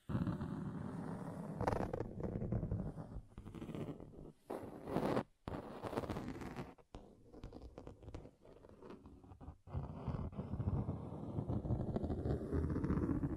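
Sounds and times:
scratching on table surfaces: 1.1s - 13.3s.

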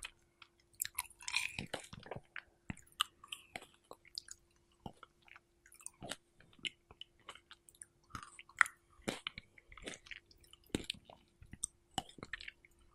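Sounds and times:
faint steady hum: 0.0s - 12.9s
person eating strawberries with wet squishy bites: 0.0s - 12.9s.

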